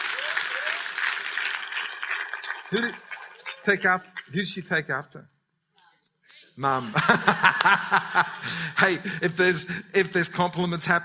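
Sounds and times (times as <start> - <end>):
audience applause: 0.0 - 4.3
speech: 2.7 - 5.3, 6.6 - 11.0
laughter: 6.7 - 9.9.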